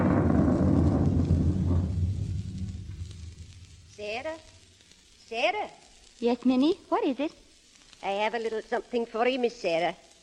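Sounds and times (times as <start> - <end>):
rolling thunder during a storm: 0.0 - 4.0
speech: 5.3 - 7.4, 8.0 - 10.0.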